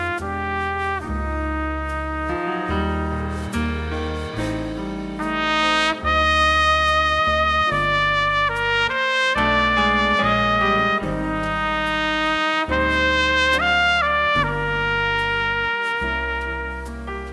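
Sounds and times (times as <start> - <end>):
solo melody: 0.0 - 17.3.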